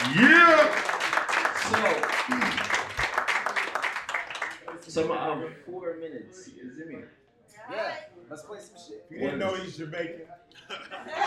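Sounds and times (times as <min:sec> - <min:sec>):
crowd clapping: 0:00.0 - 0:05.0
speech: 0:05.0 - 0:11.2
laughter: 0:10.5 - 0:11.2.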